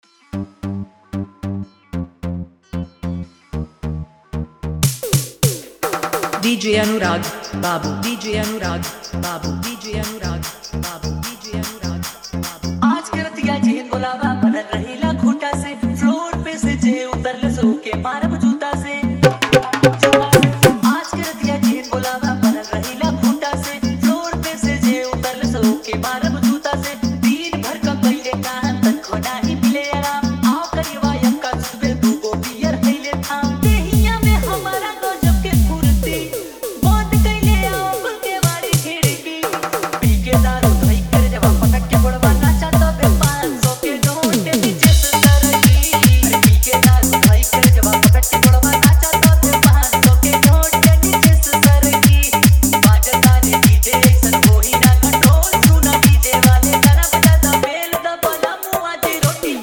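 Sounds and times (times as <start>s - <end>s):
Bhojpuri music: 0.0s - 59.6s.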